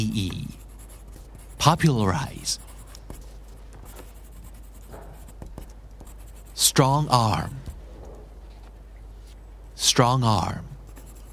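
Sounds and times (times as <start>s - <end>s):
pencil tip writing on paper: 0.0s - 7.7s, 10.8s - 11.3s
speech: 1.6s - 2.7s, 6.6s - 7.7s, 9.8s - 10.7s.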